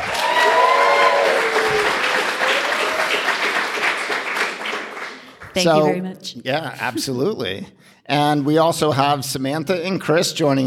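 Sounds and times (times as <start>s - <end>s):
audience applause for a co-host at a live recorded gathering: 0.0s - 5.7s
speech: 5.6s - 10.6s.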